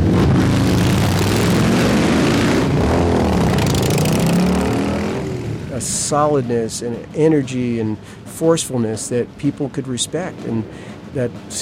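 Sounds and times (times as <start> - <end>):
Harley-Davidson motorcycle engine passing by: 0.0 - 7.1
speech: 6.1 - 11.6.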